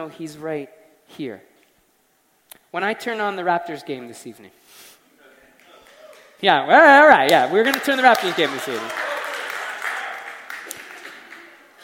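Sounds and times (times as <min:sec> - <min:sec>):
speech: 0:00.0 - 0:01.5, 0:02.7 - 0:04.9, 0:06.4 - 0:09.0
audience clapping: 0:05.5 - 0:06.4, 0:07.0 - 0:11.8.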